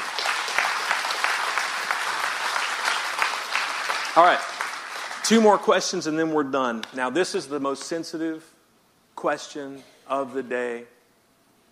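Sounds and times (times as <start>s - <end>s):
audience clapping: 0.0s - 5.8s
speech: 4.2s - 4.5s, 5.3s - 8.6s, 9.2s - 11.0s.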